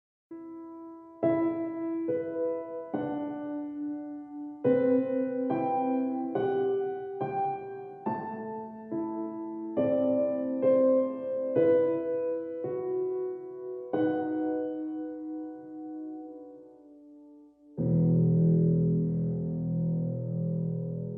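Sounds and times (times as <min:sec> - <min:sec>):
piano: 0:00.3 - 0:21.1.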